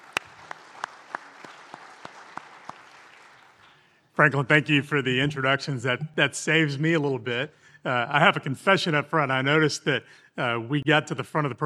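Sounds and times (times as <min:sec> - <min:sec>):
audience applause for the panel: 0:00.0 - 0:03.8
speech: 0:04.2 - 0:11.6.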